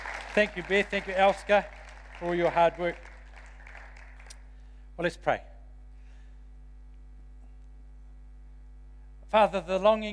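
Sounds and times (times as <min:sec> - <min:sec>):
crowd applause: 0:00.0 - 0:04.4
low electrical hum: 0:00.0 - 0:10.1
speech: 0:00.4 - 0:03.1, 0:05.0 - 0:05.5, 0:09.3 - 0:10.1.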